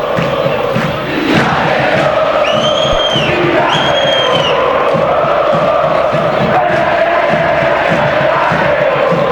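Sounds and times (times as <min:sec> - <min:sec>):
Olimpia football fans cheering in the Defensores stadium: 0:00.0 - 0:09.3
high whistle tones: 0:02.1 - 0:04.8.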